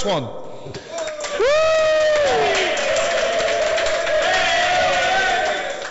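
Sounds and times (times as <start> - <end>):
crowd cheering and clapping: 0.8 - 5.8
high-pitched whoop: 1.3 - 5.8.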